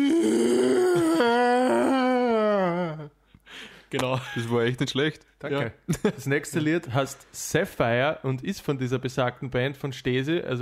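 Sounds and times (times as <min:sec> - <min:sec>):
voice imitating a whale call: 0:00.0 - 0:03.1
speech: 0:03.9 - 0:10.6.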